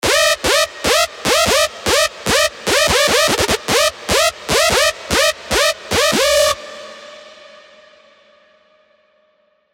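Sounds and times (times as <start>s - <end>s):
screech: 0.0s - 9.2s.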